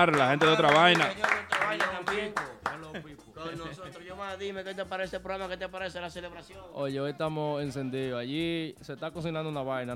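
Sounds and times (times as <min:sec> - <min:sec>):
steady rhythmic applause: 0:00.0 - 0:04.2
speech: 0:00.0 - 0:09.9.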